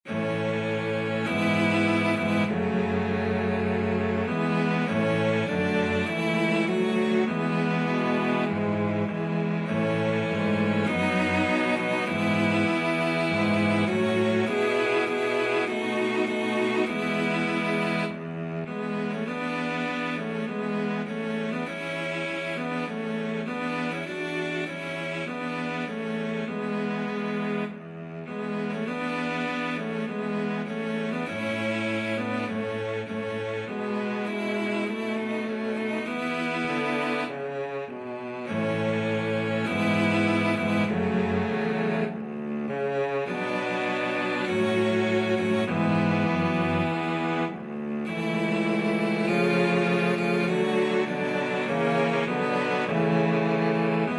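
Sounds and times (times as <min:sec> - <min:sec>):
cello quartet: 0:00.0 - 0:54.1.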